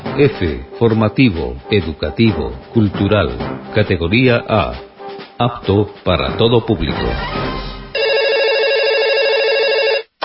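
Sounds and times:
speech: 0.2s - 7.7s
telephone ringing: 8.0s - 10.2s.

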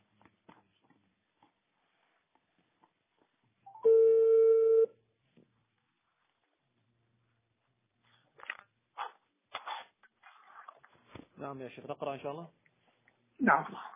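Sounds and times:
telephone dialing a call: 3.7s - 4.9s
speech: 11.5s - 12.6s, 13.5s - 13.9s.

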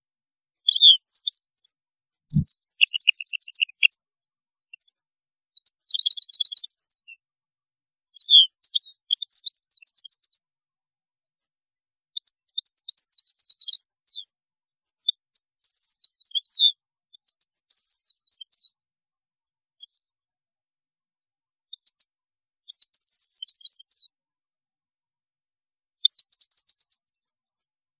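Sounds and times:
European goldfinch song: 0.5s - 1.7s, 2.3s - 4.0s, 4.7s - 7.2s, 8.0s - 10.4s, 12.1s - 14.3s, 15.0s - 18.8s, 22.7s - 24.1s, 26.0s - 27.3s.

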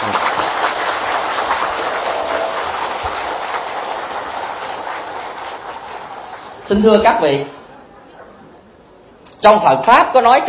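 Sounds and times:
large crowd applause: 0.0s - 6.8s
speech: 6.7s - 7.6s, 9.4s - 10.4s.

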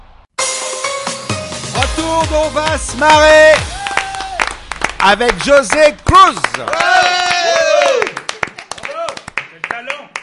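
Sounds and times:
speech: 2.1s - 3.7s, 5.0s - 7.2s
crowd cheering: 3.0s - 9.6s.

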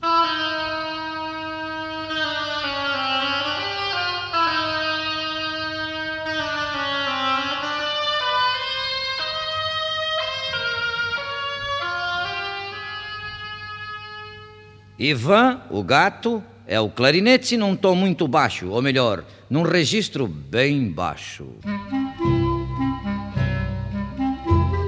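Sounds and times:
oboe: 0.0s - 15.3s, 21.6s - 24.8s
speech: 15.0s - 21.9s.

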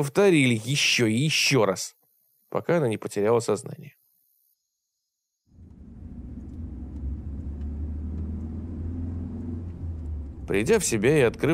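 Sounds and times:
speech: 0.0s - 4.0s, 10.5s - 11.5s
car engine on highway: 5.5s - 11.5s
car tires on highway asphalt: 5.5s - 11.5s.

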